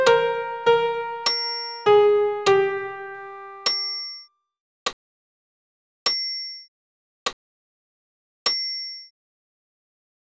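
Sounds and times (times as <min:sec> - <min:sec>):
solo piano Credo piece: 0:00.0 - 0:03.7.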